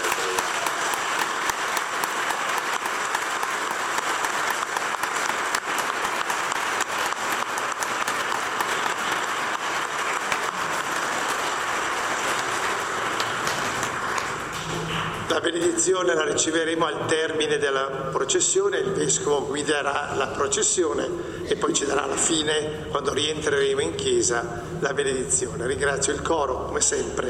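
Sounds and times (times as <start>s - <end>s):
church audience applause: 0.0s - 15.4s
speech: 15.5s - 27.2s.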